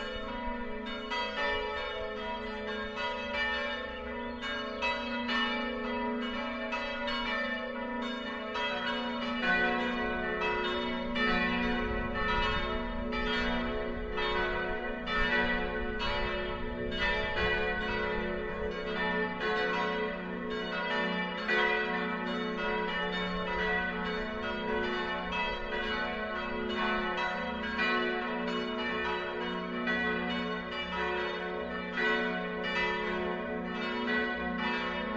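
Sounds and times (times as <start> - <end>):
multi-voice bell peal tuned cis1 e1 fis1 a1 h1 cis2: 0.0 - 35.1.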